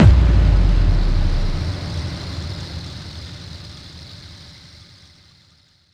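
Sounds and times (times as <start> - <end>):
bass drum FX kicks: 0.0 - 2.1.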